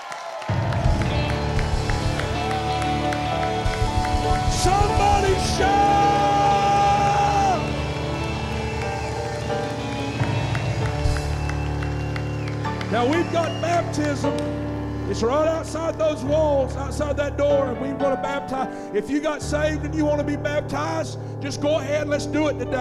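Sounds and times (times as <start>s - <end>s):
audience shouting: 0.0s - 15.9s
speech: 13.0s - 22.7s.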